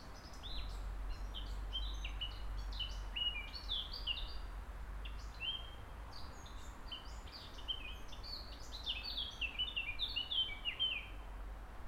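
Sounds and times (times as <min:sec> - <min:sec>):
birds singing: 0:00.0 - 0:04.4, 0:05.0 - 0:11.2.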